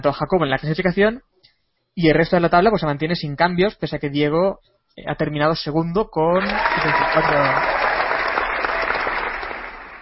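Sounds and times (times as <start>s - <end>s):
speech: 0.0s - 1.3s, 2.0s - 7.8s
applause sound effect: 6.4s - 10.0s.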